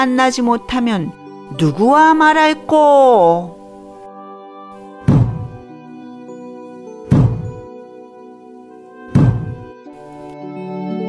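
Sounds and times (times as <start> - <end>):
speech: 0.0 - 3.6
Zen master's wooden staff striking a floor: 5.0 - 5.6, 7.1 - 7.6, 9.1 - 9.7.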